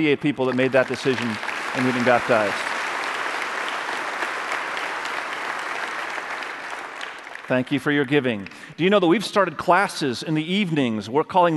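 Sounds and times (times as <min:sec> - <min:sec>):
speech: 0:00.0 - 0:02.7, 0:07.5 - 0:11.5
crowd applauding: 0:00.0 - 0:08.6.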